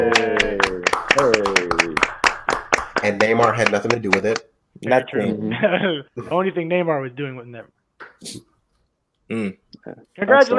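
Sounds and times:
sharp hand claps: 0.0 - 4.4
speech: 3.3 - 8.5, 9.3 - 10.5.

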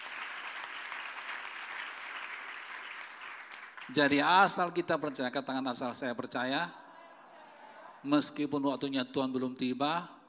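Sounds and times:
audience applause: 0.0 - 4.1
speech: 3.9 - 6.8, 8.0 - 10.2.

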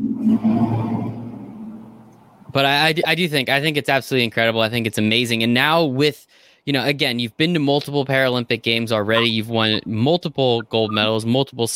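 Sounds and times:
truck driving past: 0.0 - 2.5
speech: 0.2 - 1.1, 2.5 - 11.7.

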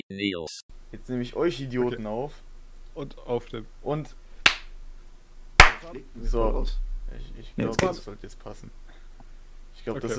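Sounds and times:
speech: 0.1 - 4.2, 5.8 - 8.9, 9.8 - 10.1
hand clap for recording sync: 4.4 - 4.7, 5.6 - 5.9.

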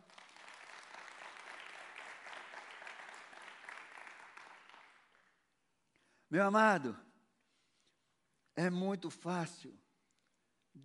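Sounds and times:
audience applause: 0.0 - 5.3
speech: 6.3 - 7.0, 8.6 - 9.8.

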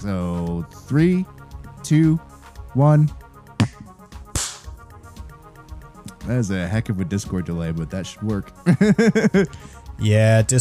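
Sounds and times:
speech: 0.0 - 3.2, 6.3 - 10.6
single hand clap for audio sync: 4.4 - 4.8
laughter: 8.6 - 9.6.

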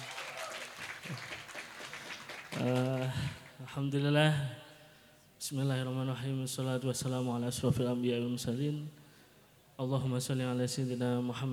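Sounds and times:
audience applause: 0.0 - 3.5
speech: 1.1 - 1.3, 2.6 - 4.6, 5.4 - 9.0, 9.8 - 11.5.

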